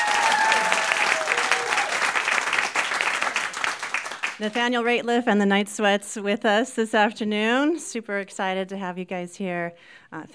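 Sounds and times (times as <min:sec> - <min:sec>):
studio audience clapping: 0:00.0 - 0:04.7
speech: 0:04.4 - 0:10.3.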